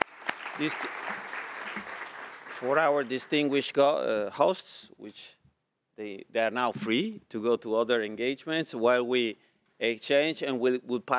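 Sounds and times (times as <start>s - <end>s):
audience applause at a conference session on sustainable energy: 0.0s - 3.6s
speech: 0.6s - 1.2s, 2.6s - 5.4s, 6.0s - 11.1s.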